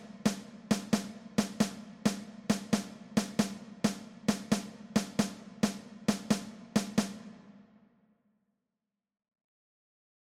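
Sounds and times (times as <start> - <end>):
drum kit percussion: 0.0 - 7.5.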